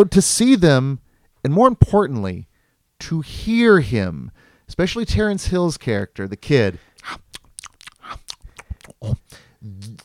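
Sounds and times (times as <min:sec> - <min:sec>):
speech: 0:00.0 - 0:07.2, 0:09.0 - 0:10.0
person eating hot dogs: 0:06.9 - 0:10.0.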